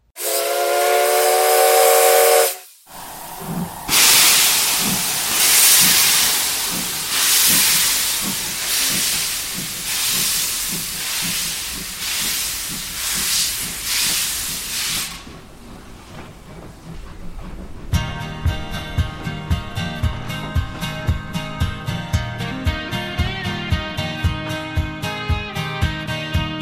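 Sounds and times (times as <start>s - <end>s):
steam locomotive whistle blast: 0.2s - 9.4s
steam locomotive chuffing as it pulls away: 0.2s - 26.5s
train wheels clattering and rattling: 2.9s - 25.1s.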